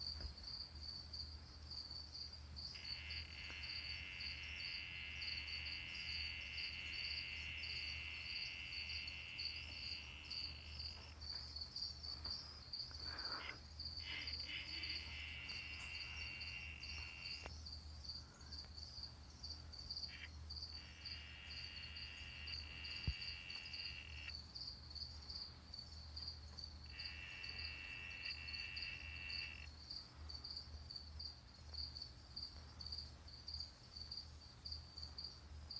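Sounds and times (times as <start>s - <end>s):
insect chirping: 0.0s - 35.7s
Brazilian yellow-backed poison frog buzzing trill: 2.7s - 11.2s, 13.0s - 17.5s, 20.0s - 24.3s, 26.9s - 29.7s.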